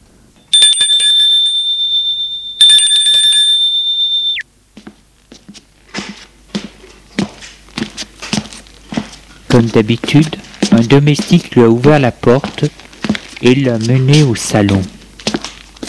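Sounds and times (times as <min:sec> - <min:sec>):
doorbell ringing: 0:00.4 - 0:04.4
speech: 0:09.6 - 0:12.8, 0:13.4 - 0:15.0.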